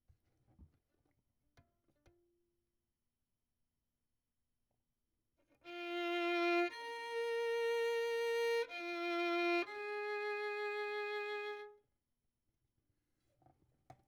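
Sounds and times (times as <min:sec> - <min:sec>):
violin: 0:05.6 - 0:11.8.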